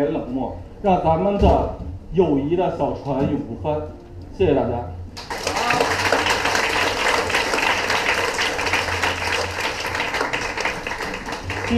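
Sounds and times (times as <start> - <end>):
speech: 0.0 - 5.0
audience applause: 5.2 - 11.7.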